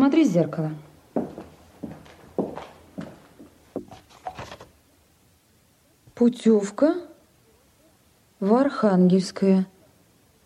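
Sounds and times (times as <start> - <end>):
speech: 0.0 - 0.9, 6.2 - 7.1, 8.4 - 9.7
man's heavy footsteps: 0.9 - 4.8.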